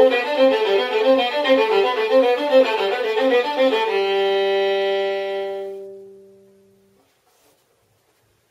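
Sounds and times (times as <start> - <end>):
violin etude: 0.0 - 6.4.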